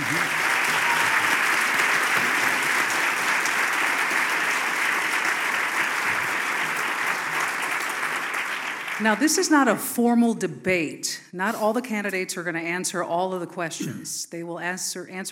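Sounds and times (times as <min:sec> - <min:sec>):
audience applause: 0:00.0 - 0:09.4
speech: 0:09.0 - 0:15.3.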